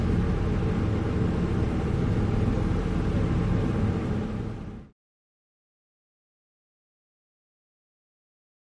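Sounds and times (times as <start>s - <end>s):
ferry boat on a cruise: 0.0s - 5.0s.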